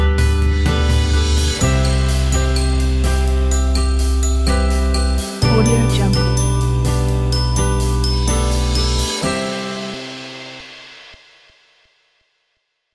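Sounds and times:
light upbeat corporate music: 0.2 - 10.1.

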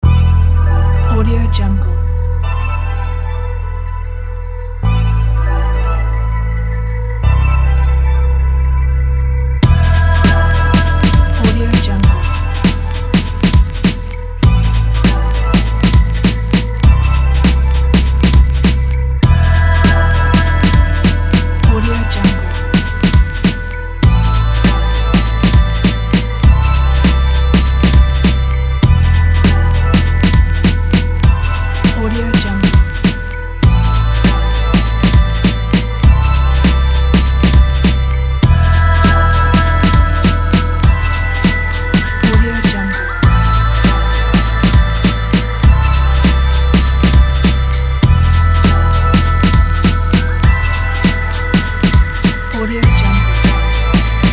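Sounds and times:
vintage soft easy abstract music: 0.0 - 54.3.

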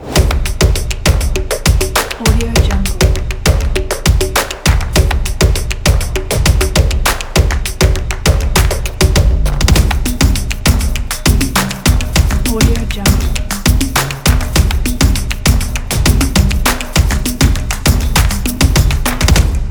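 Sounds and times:
ethnic stomp percussion: 0.0 - 19.6.

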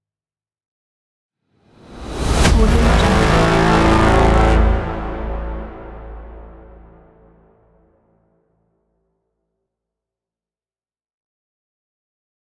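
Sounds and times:
riser: 1.9 - 7.5
braam hits: 1.9 - 7.6.

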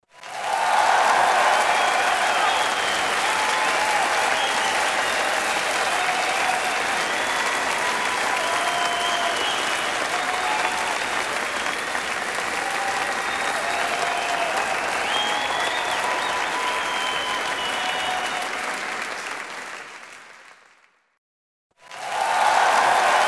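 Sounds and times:
applause: 0.0 - 21.2, 21.8 - 23.2.

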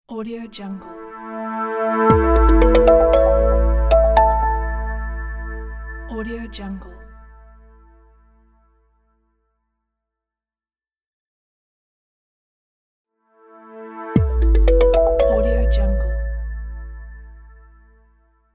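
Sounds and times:
simple logo jingle: 2.1 - 6.6, 14.2 - 17.3.

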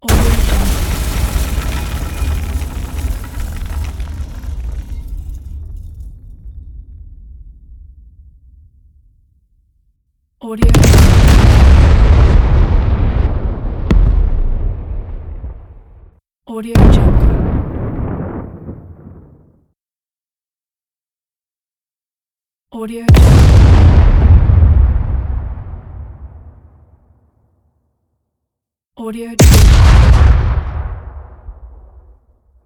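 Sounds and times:
explosions: 0.0 - 9.8, 10.6 - 16.1, 16.8 - 19.5, 23.1 - 27.0, 29.4 - 32.3.

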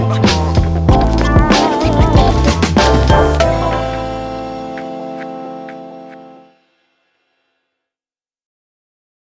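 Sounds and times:
urban stylish hip hop music: 0.0 - 6.6.

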